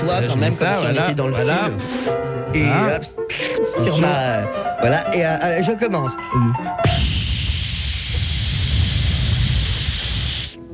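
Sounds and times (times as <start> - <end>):
speech: 0.0 - 7.2
blowtorch searing meat: 6.8 - 10.6.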